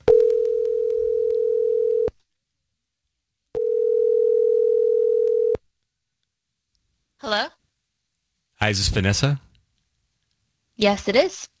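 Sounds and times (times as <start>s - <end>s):
telephone line tones as a call is placed: 0.1s - 2.1s, 3.6s - 5.6s
speech: 8.6s - 9.5s, 10.8s - 11.5s.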